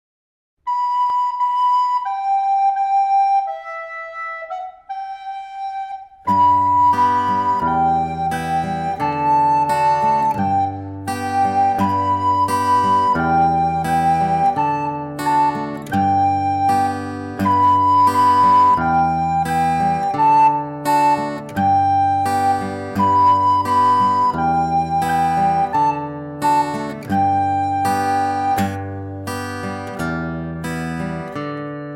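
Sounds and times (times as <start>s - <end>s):
recorder accompaniment to a children's song: 0.7s - 31.4s.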